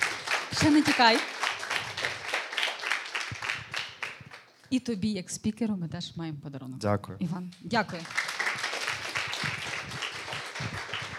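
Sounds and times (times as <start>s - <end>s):
applause: 0.0s - 4.5s, 7.8s - 11.1s
speech: 0.6s - 1.4s, 4.7s - 8.3s.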